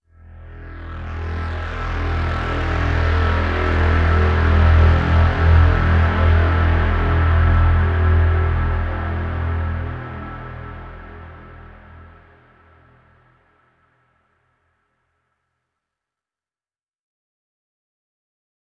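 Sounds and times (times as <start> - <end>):
downtown overlay drone: 0.2 - 13.6.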